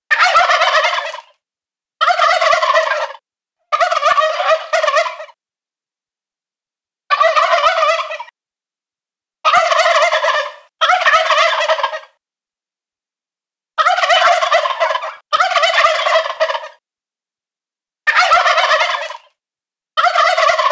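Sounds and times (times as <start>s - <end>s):
male turkeys gobbling: 0.1s - 1.4s, 2.0s - 5.4s, 7.1s - 8.3s, 9.4s - 12.2s, 13.8s - 16.8s, 18.1s - 19.3s, 20.0s - 20.7s.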